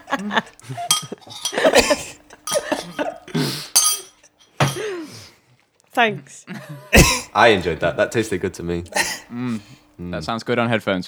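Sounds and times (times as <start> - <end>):
spoon scraping and clinking against a breakfast cereal bowl: 0.0 - 4.9
speech: 0.1 - 2.2, 6.0 - 11.0.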